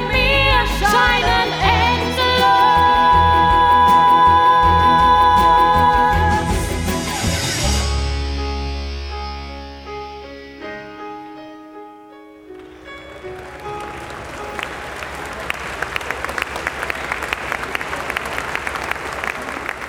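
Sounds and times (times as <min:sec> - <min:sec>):
orchestral music: 0:00.0 - 0:15.8
large theater audience applause: 0:12.8 - 0:19.8.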